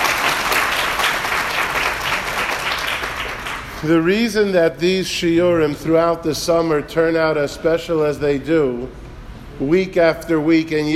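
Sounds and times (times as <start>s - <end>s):
audience applause: 0.0s - 3.8s
speech: 3.8s - 9.0s, 9.6s - 10.9s.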